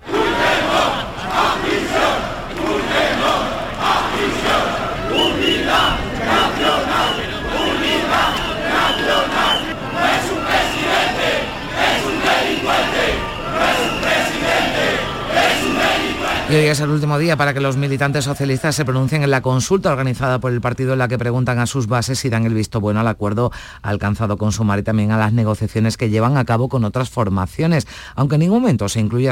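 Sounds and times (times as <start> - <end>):
protest crowd chanting slogans: 0.0 - 19.0
speech: 16.7 - 29.3.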